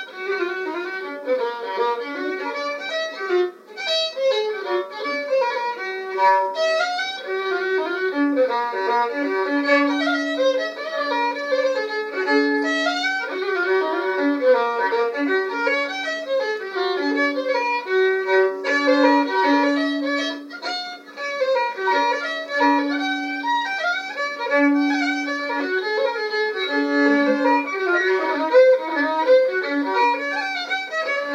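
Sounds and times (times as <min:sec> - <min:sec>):
hornpipe tune: 0:00.1 - 0:31.3.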